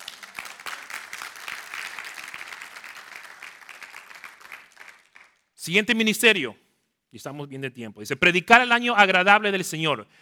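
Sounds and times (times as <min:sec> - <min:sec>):
audience applauding: 0:00.0 - 0:05.5
speech: 0:05.6 - 0:10.2.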